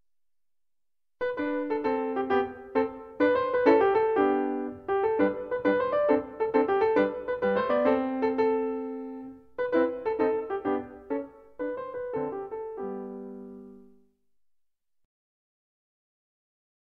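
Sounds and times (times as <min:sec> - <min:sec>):
piano: 0:01.2 - 0:14.2.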